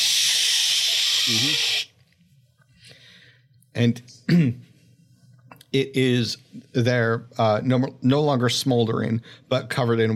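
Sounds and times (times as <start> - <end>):
fire extinguisher spraying: 0.0 - 1.9
speech: 1.3 - 1.8, 3.8 - 4.7, 5.7 - 10.1.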